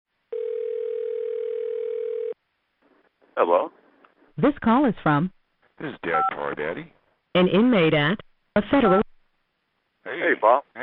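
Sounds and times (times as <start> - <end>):
telephone ringing: 0.3 - 2.4
speech: 3.4 - 3.8, 4.4 - 9.0, 10.2 - 10.8.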